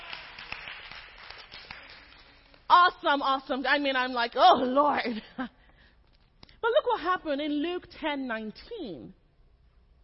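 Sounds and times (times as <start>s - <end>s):
audience clapping: 0.0s - 2.7s
speech: 2.7s - 5.6s, 6.6s - 9.2s.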